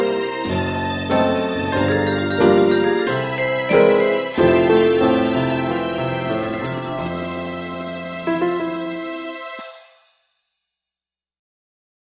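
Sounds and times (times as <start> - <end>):
piano strings: 0.0 - 9.9
vibraphone: 1.1 - 8.3.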